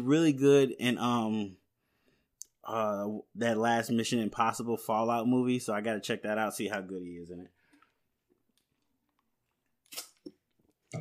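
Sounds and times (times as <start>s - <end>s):
speech: 0.0s - 1.6s, 2.6s - 7.6s
person drinking water: 7.6s - 10.9s.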